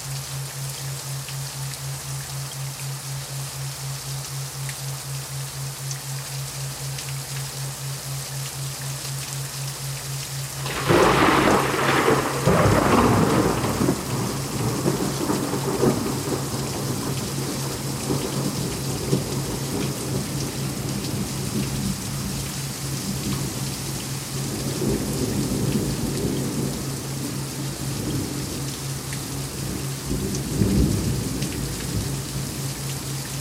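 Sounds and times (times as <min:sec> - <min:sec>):
thundering rainstorm: 0:00.0 - 0:33.3
thunder in a rainstorm: 0:10.7 - 0:20.0.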